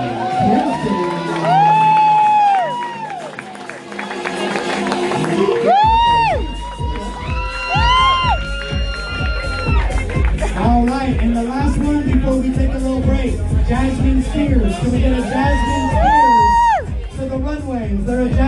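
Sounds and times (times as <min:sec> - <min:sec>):
crowd cheering and shouting: 0:00.0 - 0:18.4
scattered claps: 0:01.4 - 0:05.8, 0:08.5 - 0:12.3.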